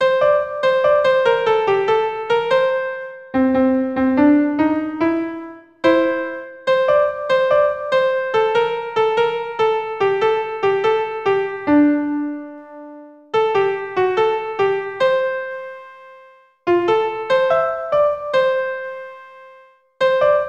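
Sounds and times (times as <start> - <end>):
melody: 0.0 - 20.4.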